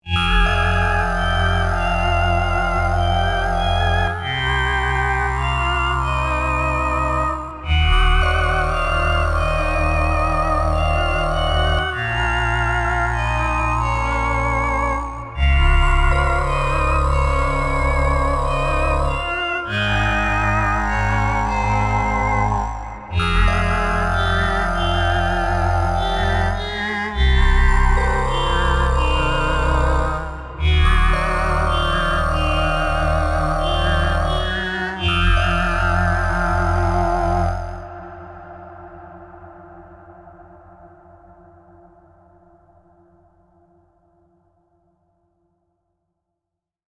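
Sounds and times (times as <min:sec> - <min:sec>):
PPG Wave Computer 360 wavetable synthesizer: 0:00.1 - 0:38.2.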